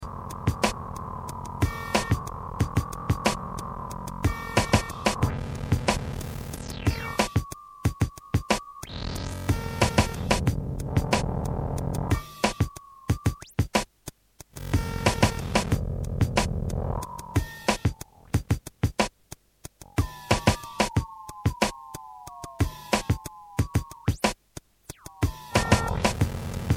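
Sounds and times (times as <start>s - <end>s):
music beat: 0.0s - 26.7s.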